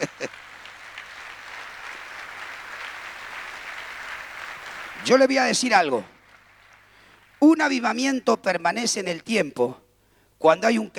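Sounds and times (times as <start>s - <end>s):
crowd applause: 0.0s - 7.4s
speech: 5.0s - 6.2s, 7.4s - 9.8s, 10.4s - 10.9s.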